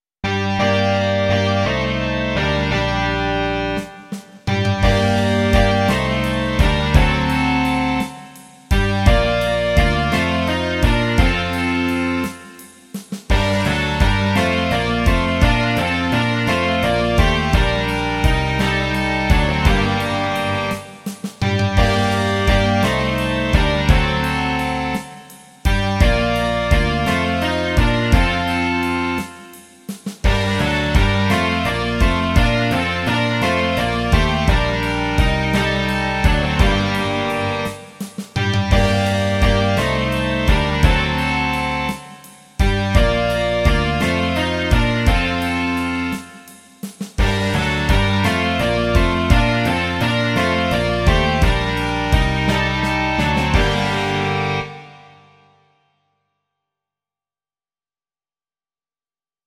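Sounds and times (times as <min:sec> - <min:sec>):
rock music: 0:00.2 - 0:55.2.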